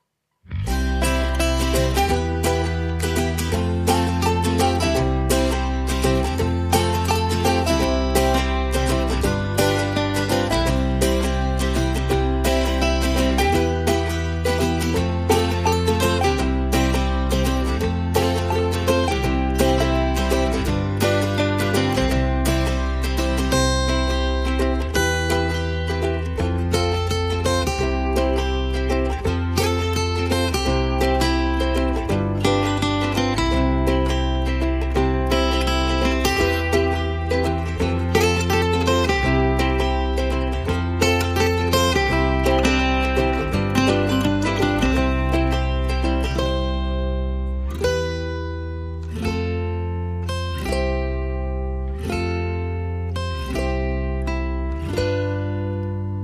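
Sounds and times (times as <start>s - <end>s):
bass: 0.0s - 56.2s
guitars: 0.0s - 56.2s
ukulele: 0.0s - 56.2s.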